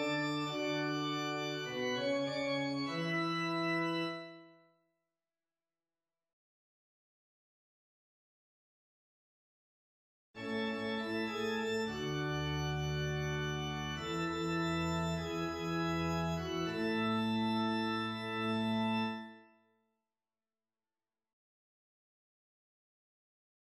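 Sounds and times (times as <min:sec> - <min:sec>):
organ: 0:00.0 - 0:04.5, 0:10.4 - 0:19.5.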